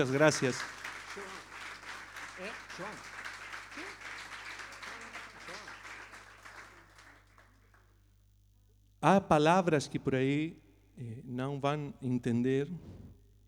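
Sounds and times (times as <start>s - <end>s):
speech: 0.0s - 0.8s, 2.4s - 3.1s, 9.0s - 13.0s
audience applause: 0.0s - 7.9s.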